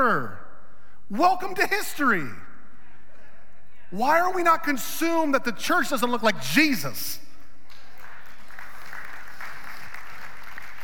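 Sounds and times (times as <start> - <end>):
speech: 0.0 - 0.4, 1.1 - 2.5, 3.9 - 7.3
audience clapping: 7.6 - 10.8.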